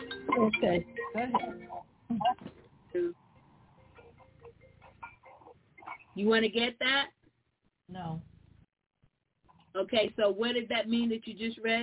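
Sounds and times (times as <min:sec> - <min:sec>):
mobile phone ringing: 0:00.0 - 0:01.9, 0:03.8 - 0:05.2
speech: 0:00.4 - 0:03.2, 0:06.2 - 0:07.2, 0:09.8 - 0:11.8.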